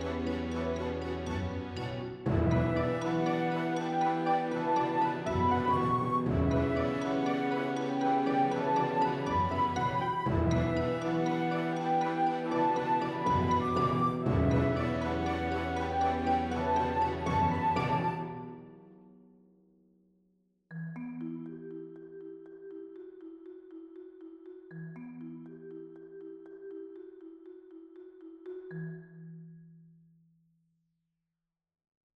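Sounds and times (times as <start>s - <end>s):
orchestra playing: 0.0s - 18.5s.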